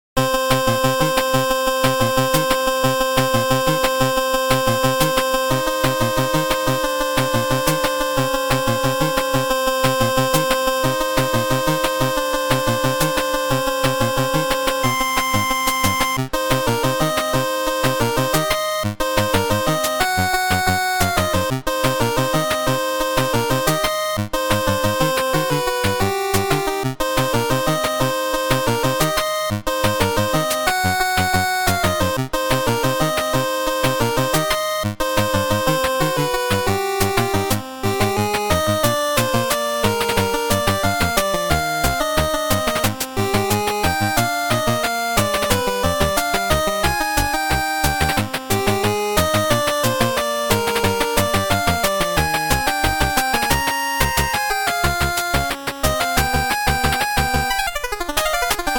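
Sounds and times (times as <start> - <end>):
eight-bit chiptune music: 0.2 - 58.7.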